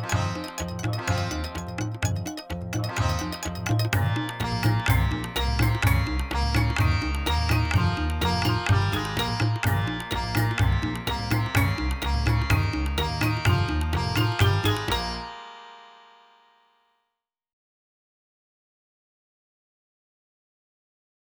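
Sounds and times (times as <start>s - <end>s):
saxophone: 0.0s - 15.0s.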